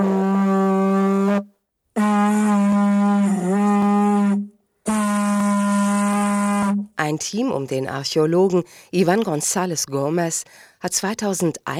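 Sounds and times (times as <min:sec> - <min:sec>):
hollow stone blown like conch horn: 0:00.0 - 0:07.0
speech: 0:07.1 - 0:11.7.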